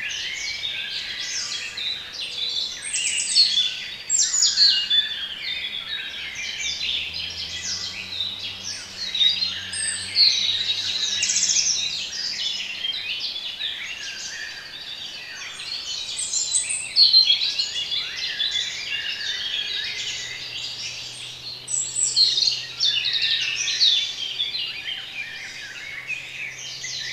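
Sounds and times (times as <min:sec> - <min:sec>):
songbird chorus singing: 0:00.0 - 0:27.1.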